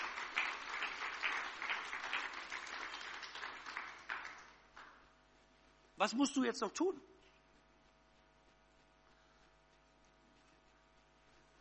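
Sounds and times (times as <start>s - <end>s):
applause: 0.0s - 5.0s
speech: 6.0s - 7.2s.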